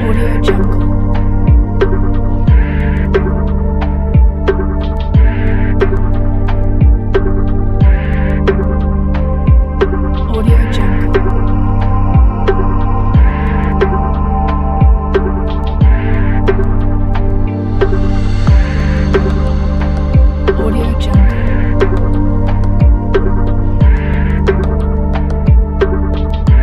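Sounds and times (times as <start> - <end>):
atmospheric modern electronic music: 0.0 - 26.6.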